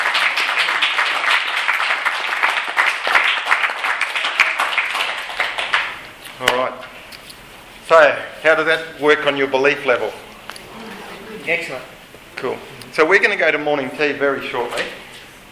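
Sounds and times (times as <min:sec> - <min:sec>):
audience applause: 0:00.0 - 0:06.0
speech: 0:07.9 - 0:10.2, 0:11.4 - 0:15.4.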